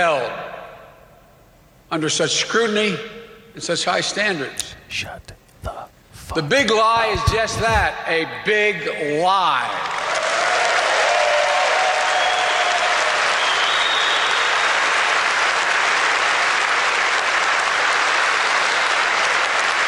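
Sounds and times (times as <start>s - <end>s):
speech: 0.0s - 0.6s, 1.9s - 9.9s
crowd cheering and applauding: 9.8s - 19.8s.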